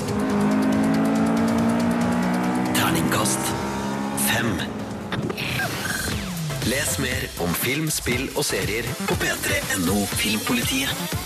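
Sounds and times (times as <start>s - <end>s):
racing car engine in a driving video game: 0.0s - 6.7s
speech: 4.4s - 5.8s, 6.7s - 11.2s.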